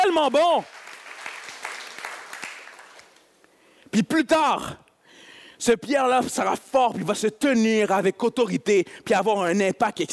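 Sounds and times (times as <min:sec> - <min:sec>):
audience applauding: 0:00.1 - 0:03.2
speech: 0:00.2 - 0:00.8, 0:03.9 - 0:04.8, 0:05.6 - 0:10.1.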